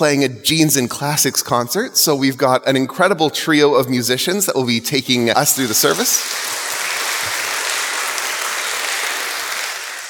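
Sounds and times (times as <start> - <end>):
speech: 0.0 - 6.6
audience applause: 5.6 - 10.0.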